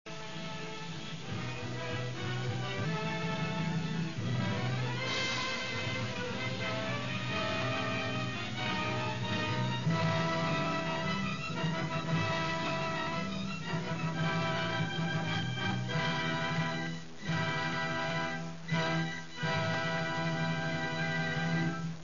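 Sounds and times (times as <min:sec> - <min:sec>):
adagio dance music: 0:00.1 - 0:22.0.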